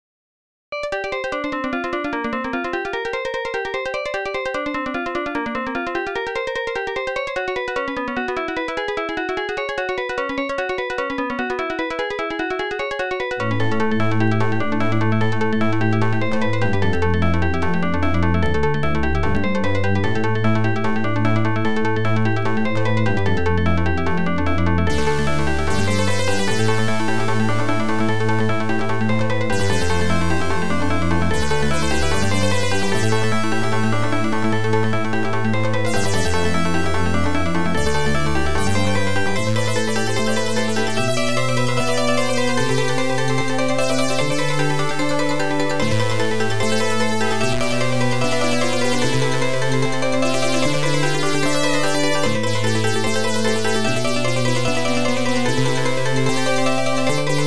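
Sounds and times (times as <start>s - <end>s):
OPL2 FM synth chip music: 0.9s - 57.4s.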